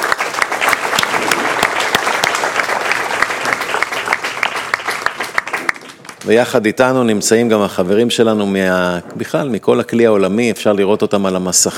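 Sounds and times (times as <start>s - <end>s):
audience applause: 0.0s - 6.6s
speech: 6.2s - 11.7s.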